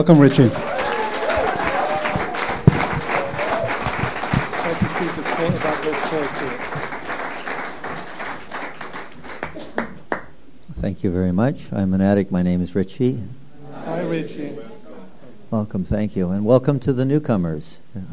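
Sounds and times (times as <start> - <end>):
speech: 0.0 - 0.8, 10.8 - 13.4, 14.0 - 14.7, 15.5 - 18.1
audience applauding a speaker: 0.0 - 10.3.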